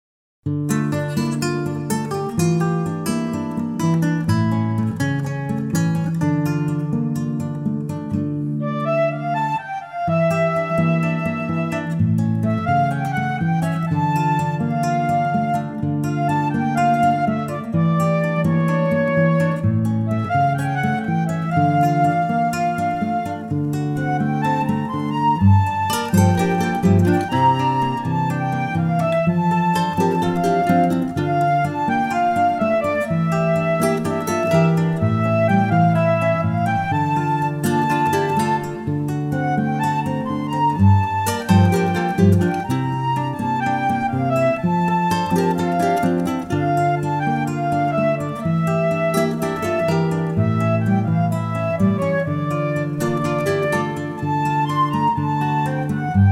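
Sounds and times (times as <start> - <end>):
instrumental melody track: 0.5 - 56.3.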